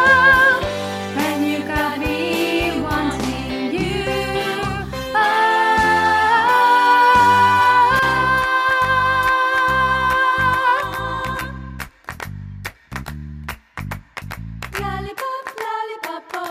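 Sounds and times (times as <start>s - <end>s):
soprano singing: 0.0s - 11.6s.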